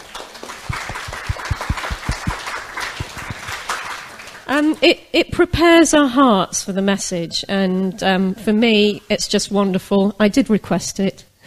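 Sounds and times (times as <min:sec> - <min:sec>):
group clapping: 0:00.0 - 0:04.8
speech: 0:04.5 - 0:11.3.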